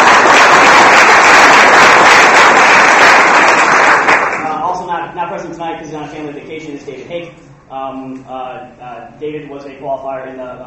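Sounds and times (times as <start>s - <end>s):
crowd applauding: 0.0s - 4.6s
speech: 5.8s - 10.6s.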